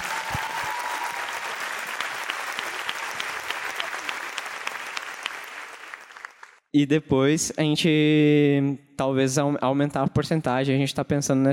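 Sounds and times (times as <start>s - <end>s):
crowd applause: 0.0s - 6.6s
speech: 6.8s - 11.5s.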